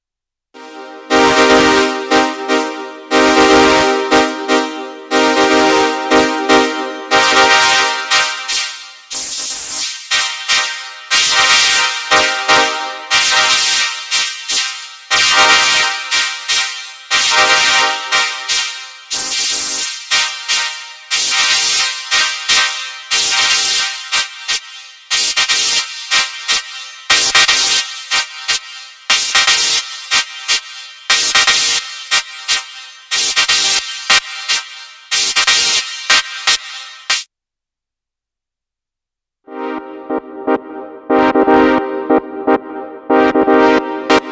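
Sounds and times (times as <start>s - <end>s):
filtered phased analog synth brass: 0.6s - 35.8s, 39.5s - 44.3s.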